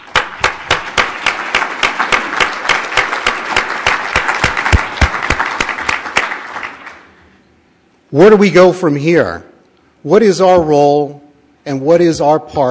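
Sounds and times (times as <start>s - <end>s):
audience applauding: 0.0s - 7.2s
speech: 8.1s - 12.7s.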